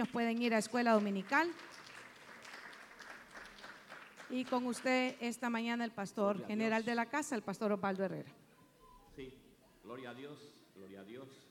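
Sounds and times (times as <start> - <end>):
speech: 0.0 - 1.8, 4.3 - 8.4, 9.2 - 11.4
audience applause: 1.0 - 5.2.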